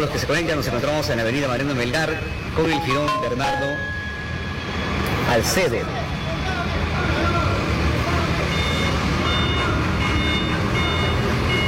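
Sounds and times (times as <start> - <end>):
speech: 0.0 - 4.0, 4.8 - 6.1
heavy road and engine noise on a city avenue: 0.0 - 11.6
faint high reversing beeps: 2.1 - 5.0, 8.5 - 11.6.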